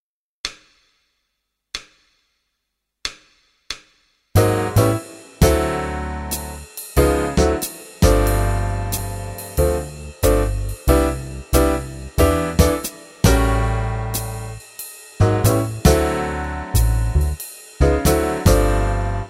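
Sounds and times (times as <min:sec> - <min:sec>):
jazz music: 0:04.4 - 0:19.2.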